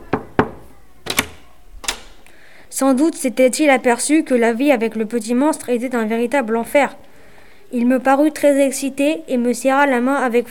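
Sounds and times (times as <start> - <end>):
knocking on a door: 0.0 - 1.4
speech: 2.7 - 7.0, 7.7 - 10.4.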